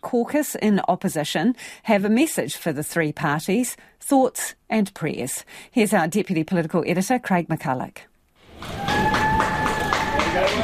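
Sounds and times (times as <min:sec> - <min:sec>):
speech: 0:00.1 - 0:09.2
airport passengers applauding: 0:08.5 - 0:10.6.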